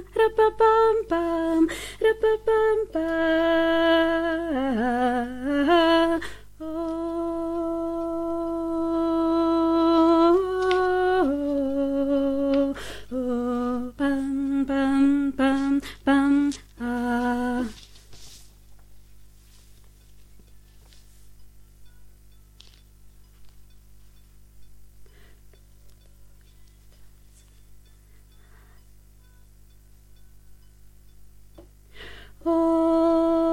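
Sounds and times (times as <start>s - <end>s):
soprano voice: 0.0s - 18.0s, 32.4s - 33.5s.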